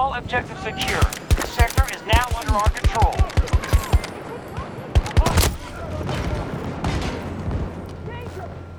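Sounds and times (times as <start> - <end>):
speech: 0.1 - 3.5
gunfire in a military shooter video game: 0.8 - 4.4, 5.0 - 7.8.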